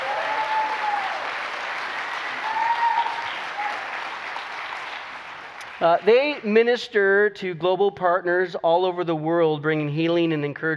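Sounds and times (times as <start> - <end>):
church audience applauding: 0.0 - 6.5
speech: 5.8 - 10.7.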